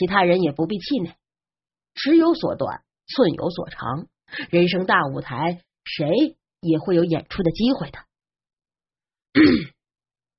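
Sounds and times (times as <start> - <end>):
speech: 0.0 - 1.2, 2.0 - 8.1, 9.3 - 9.8
throat clearing: 9.4 - 9.8.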